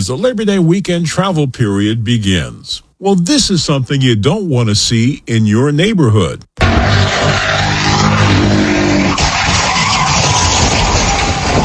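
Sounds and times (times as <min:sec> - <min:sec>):
speech: 0:00.0 - 0:07.5
engine noise during a police car chase: 0:06.6 - 0:11.6
police car chase crash with rammed and flipped cars: 0:06.6 - 0:11.6
tires skidding and squealing during a police car chase: 0:06.6 - 0:11.6.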